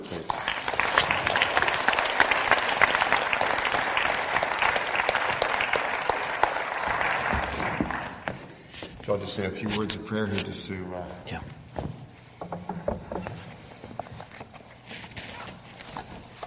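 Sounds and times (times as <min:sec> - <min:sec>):
seated audience applause greeting a speaker at a gathering in Alberta: 0:00.0 - 0:08.6
speech: 0:09.1 - 0:11.9.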